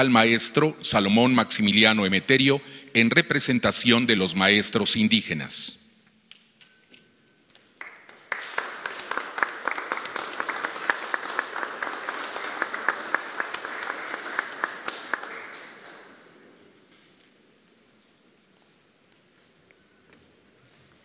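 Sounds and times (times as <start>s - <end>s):
speech: 0.0s - 5.8s
audience applause: 7.8s - 16.5s.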